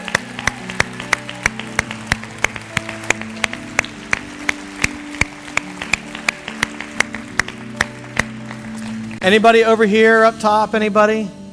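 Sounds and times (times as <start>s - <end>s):
audience cheering: 0.0s - 9.1s
speech: 9.2s - 11.4s.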